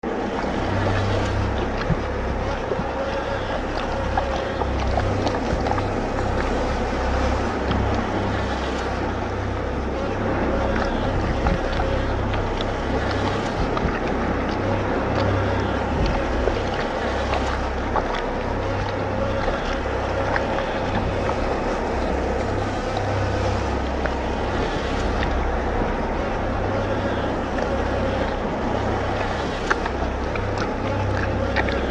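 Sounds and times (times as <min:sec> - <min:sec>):
corruption block ambience: 0:00.0 - 0:31.8.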